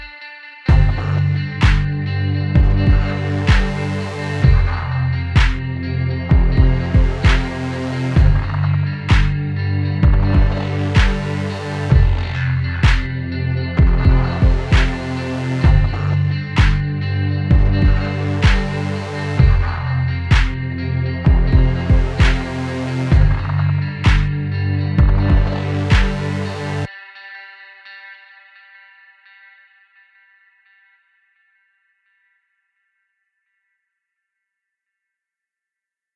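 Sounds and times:
level complete music: 0:00.7 - 0:26.9.

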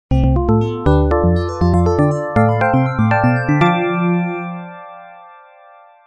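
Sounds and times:
level completed jingle: 0:00.1 - 0:04.9.

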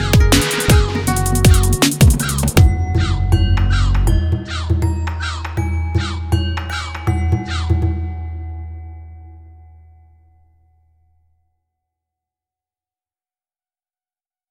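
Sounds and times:
dance song: 0:00.0 - 0:08.0.

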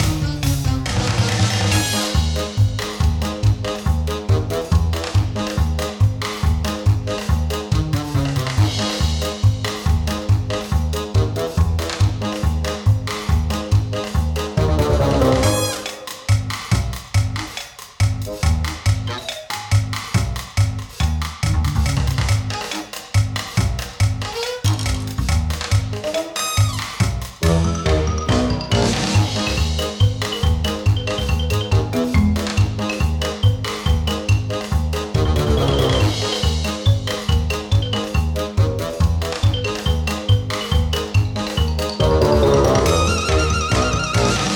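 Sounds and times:
platform action game music loop: 0:00.0 - 0:44.5.

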